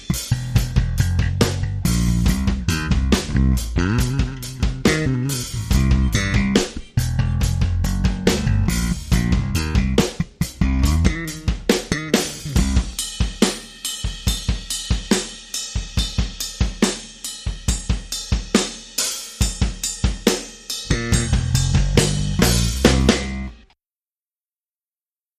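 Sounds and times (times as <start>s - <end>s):
drum and bass music: 0.0s - 23.6s.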